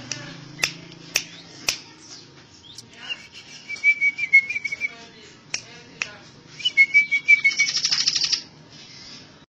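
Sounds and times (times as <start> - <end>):
bird singing trill, chirps and whistles: 0.5 - 5.0, 6.6 - 9.4.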